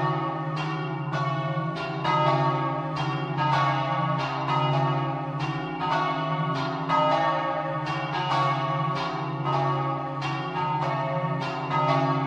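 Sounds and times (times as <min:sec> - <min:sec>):
bells ringing in Beivars: 0:00.0 - 0:12.2.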